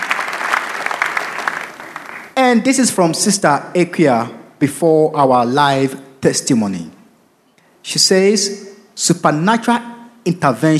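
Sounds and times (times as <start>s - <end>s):
crowd clapping: 0.0s - 2.4s
speech: 2.5s - 7.0s, 7.8s - 10.7s.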